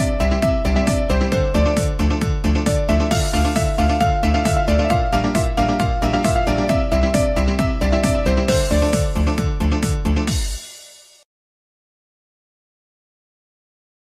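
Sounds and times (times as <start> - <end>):
piano: 0.0 - 11.0.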